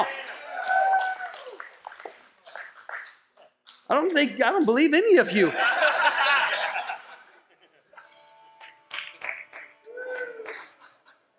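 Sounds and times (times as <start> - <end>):
weak scattered audience clapping: 0.0 - 4.3, 8.0 - 11.2
speech: 3.9 - 5.9
laughter: 5.2 - 8.1, 10.2 - 11.3.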